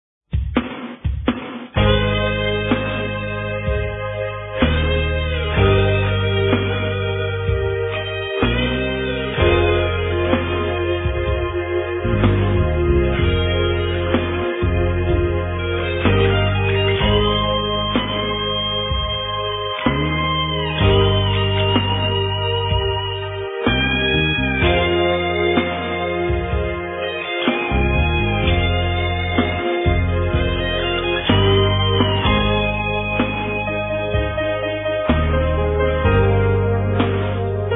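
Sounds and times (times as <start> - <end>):
piano: 1.8 - 37.7.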